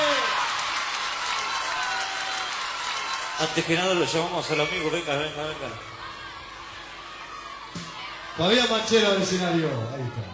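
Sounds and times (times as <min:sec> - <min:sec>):
loud audience applause: 0:00.0 - 0:07.1
speech: 0:03.4 - 0:05.9, 0:08.4 - 0:10.3.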